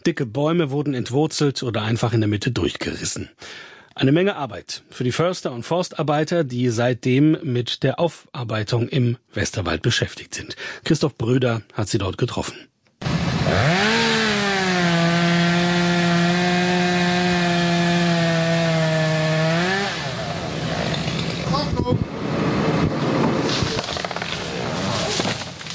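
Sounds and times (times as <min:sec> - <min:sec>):
speech: 0:00.0 - 0:12.7, 0:13.5 - 0:14.0
chainsaw cutting wood: 0:13.0 - 0:21.6, 0:22.2 - 0:25.7.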